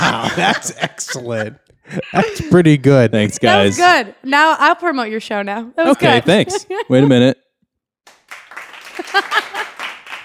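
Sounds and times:
laughter: 0.0 - 3.7, 6.0 - 7.4, 9.0 - 9.8
speech: 0.4 - 7.4, 9.0 - 9.5
studio audience applause: 8.0 - 10.2.

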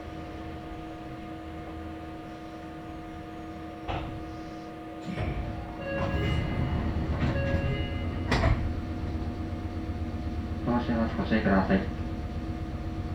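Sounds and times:
Meitetsu Kakamigahara Line local train running rumble: 0.0 - 13.1
fixed humming tones of a train: 5.0 - 10.1.

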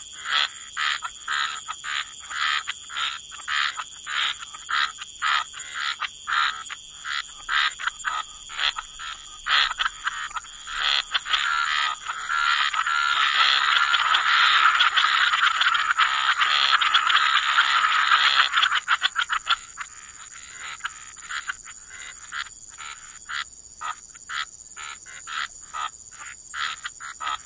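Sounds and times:
frog chorus: 0.0 - 27.4.

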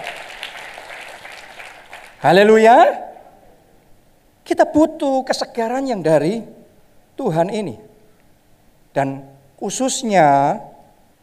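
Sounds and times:
audience applause: 0.0 - 2.2
speech: 2.2 - 3.0, 4.5 - 6.6, 7.2 - 7.9, 9.0 - 10.7.

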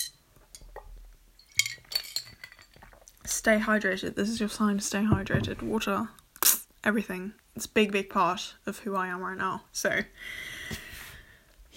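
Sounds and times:
glass clinking: 0.0 - 3.0
speech: 3.4 - 6.2, 6.8 - 10.8
soft knocks and handling: 4.3 - 6.0.

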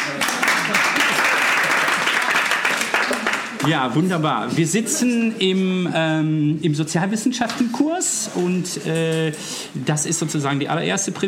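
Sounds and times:
audience clapping: 0.0 - 3.8
speech: 3.6 - 11.2.

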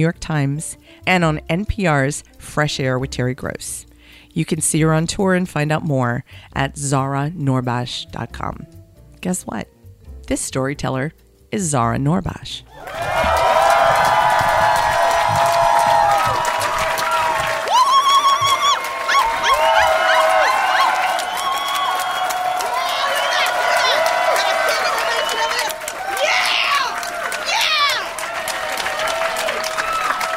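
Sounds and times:
speech: 0.0 - 13.1
crowd applause: 12.7 - 30.3
whoops, shouts and cheers: 12.7 - 30.3.

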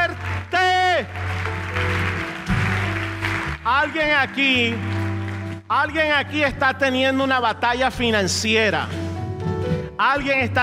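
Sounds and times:
audience applause: 0.0 - 5.6
speech: 3.8 - 4.9, 5.7 - 9.0, 10.0 - 10.6.

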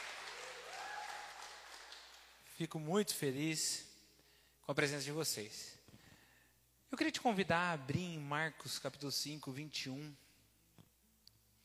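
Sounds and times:
crowd applauding for visitors: 0.0 - 2.3
speech: 2.6 - 3.9, 4.7 - 5.8, 6.9 - 10.2.

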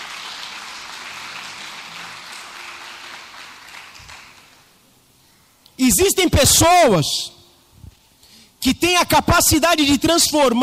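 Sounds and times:
audience applause: 0.0 - 4.8
speech: 5.8 - 7.4, 8.6 - 10.6.

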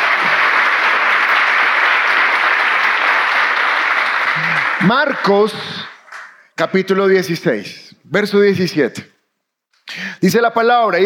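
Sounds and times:
audience applause: 0.0 - 6.4
speech: 4.8 - 5.8, 6.6 - 9.1, 10.2 - 11.0.

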